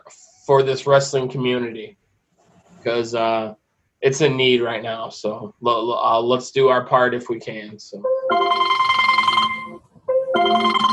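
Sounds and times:
speech: 0.1s - 2.0s, 2.8s - 8.8s
phone ringtone through a car audio system: 8.0s - 10.9s.

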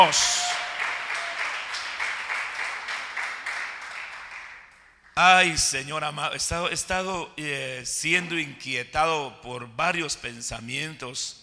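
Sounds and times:
speech: 0.0s - 0.3s, 5.2s - 11.4s
audience applause: 0.0s - 4.9s.

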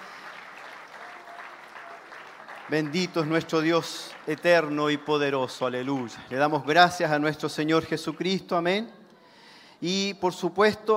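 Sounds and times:
crowd applauding loudly: 0.0s - 7.1s
speech: 2.7s - 9.0s, 9.8s - 10.9s.

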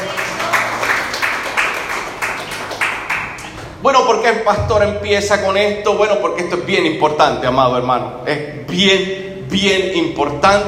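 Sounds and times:
audience applause: 0.0s - 3.8s
speech: 3.8s - 10.6s.

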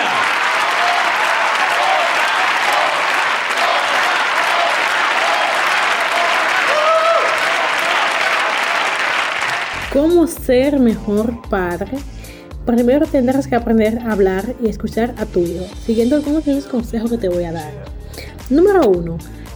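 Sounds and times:
faint cheers: 0.0s - 9.9s
large audience applauding: 0.0s - 10.0s
speech: 10.0s - 17.9s, 18.5s - 19.4s.

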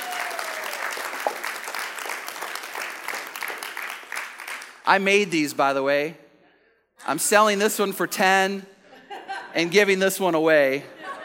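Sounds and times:
crowd applause: 0.0s - 5.0s
speech: 4.8s - 6.2s, 7.1s - 8.7s, 9.5s - 11.0s
laughter: 8.8s - 10.0s, 10.8s - 11.2s.

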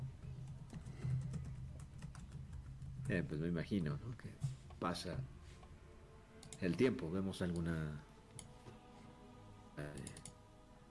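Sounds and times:
typing on a computer keyboard: 0.4s - 4.0s, 10.0s - 10.4s
speech: 3.1s - 5.4s, 6.6s - 8.1s, 9.8s - 10.3s.

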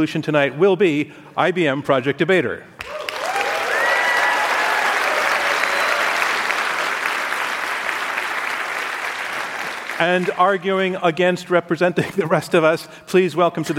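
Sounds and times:
speech: 0.0s - 3.0s, 10.0s - 13.7s
audience applause for debaters: 2.8s - 10.6s.

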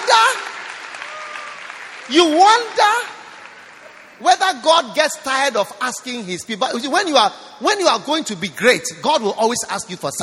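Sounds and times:
audience clapping: 0.0s - 5.0s
speech: 2.1s - 3.1s, 4.4s - 10.2s.

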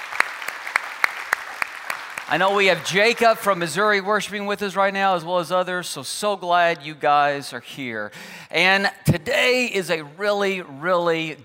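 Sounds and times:
scattered applause: 0.0s - 3.8s
church congregation clapping on a steady beat: 0.0s - 4.0s
speech: 2.3s - 11.4s.

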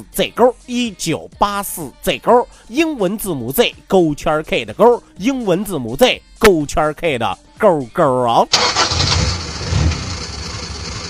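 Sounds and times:
speech: 0.0s - 8.8s
car engine cranking and turning over into a rumbling idle: 8.5s - 11.0s.

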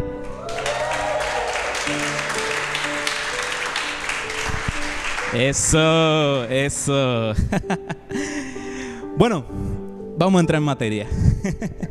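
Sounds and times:
audience applause: 0.2s - 6.5s
speech: 5.3s - 8.3s, 9.2s - 11.8s
laughter: 7.3s - 8.3s.

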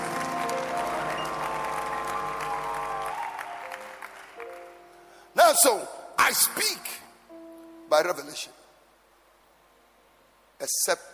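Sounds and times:
audience clapping hands: 0.0s - 4.9s
speech: 5.6s - 7.0s, 7.9s - 8.6s, 10.6s - 11.1s.

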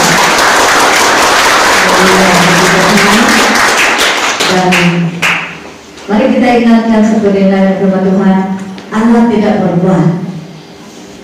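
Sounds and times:
audience applause: 0.0s - 5.4s
speech: 6.1s - 10.3s.

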